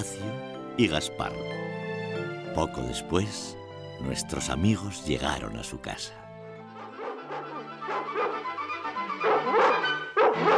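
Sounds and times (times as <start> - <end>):
speech: 0.0 - 1.6, 2.6 - 6.2
Labrador dogs barking and yipping excitedly: 6.7 - 10.5.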